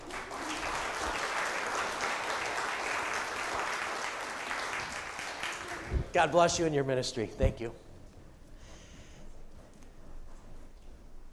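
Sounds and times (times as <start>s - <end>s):
large crowd clapping: 0.0s - 6.4s
speech: 6.1s - 7.8s.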